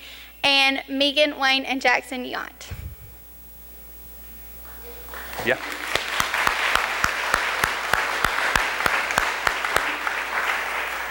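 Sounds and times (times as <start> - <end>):
speech: 0.4 - 2.6, 5.4 - 5.8
audience applause: 4.6 - 11.0.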